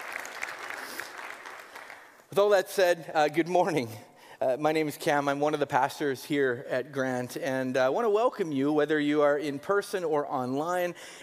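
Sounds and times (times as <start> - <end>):
audience clapping: 0.0 - 2.3
speech: 2.3 - 11.2.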